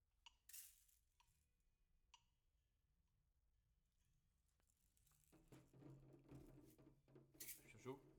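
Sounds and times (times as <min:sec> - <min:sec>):
shaker: 0:04.6 - 0:08.1.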